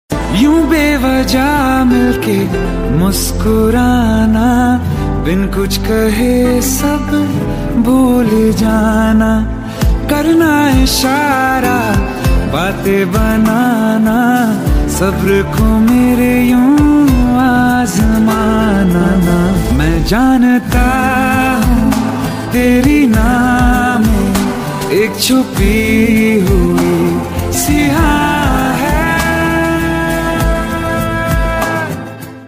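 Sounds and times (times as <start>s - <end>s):
romantic Hindi song: 0.1s - 32.4s.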